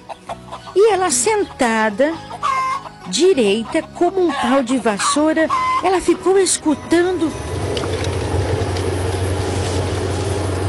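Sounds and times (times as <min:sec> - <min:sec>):
speech: 0:00.8 - 0:02.3, 0:03.1 - 0:07.5
car approaching: 0:06.2 - 0:10.6.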